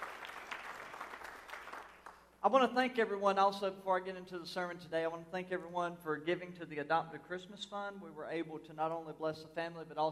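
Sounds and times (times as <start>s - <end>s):
audience applause in church: 0.0s - 2.2s
speech: 2.4s - 10.0s.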